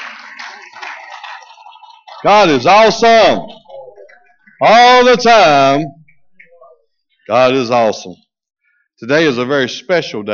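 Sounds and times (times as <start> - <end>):
audience clapping hands in praise: 0.0 - 5.8
speech: 2.2 - 3.6, 4.6 - 6.0, 7.3 - 8.2, 9.0 - 10.3.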